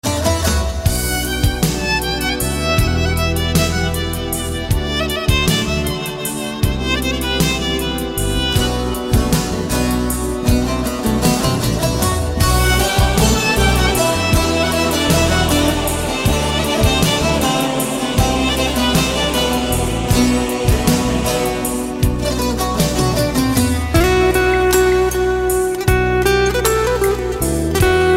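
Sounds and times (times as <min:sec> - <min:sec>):
Turkish music: 0:00.0 - 0:28.1.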